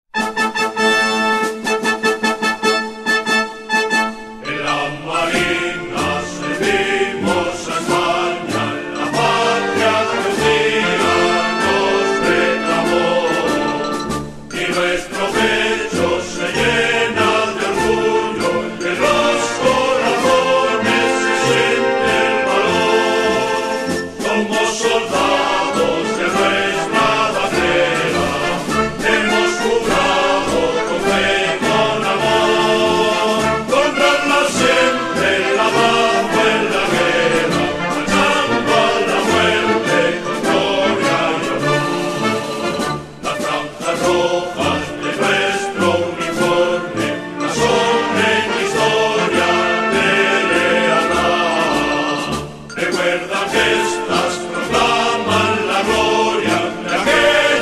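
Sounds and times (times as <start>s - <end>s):
anthem music: 0.2s - 57.6s.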